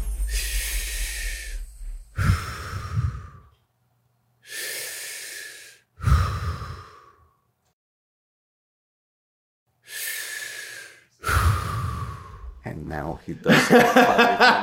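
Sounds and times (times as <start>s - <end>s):
deep forceful breathing during breath work: 0.2s - 3.6s, 4.4s - 7.6s, 9.8s - 12.6s
speech: 13.0s - 14.6s
laughter: 13.4s - 14.6s.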